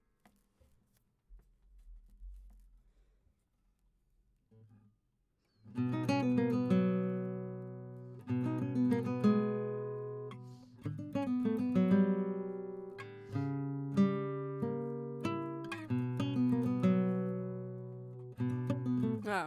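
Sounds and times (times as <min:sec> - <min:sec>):
guitar: 0:05.6 - 0:19.4.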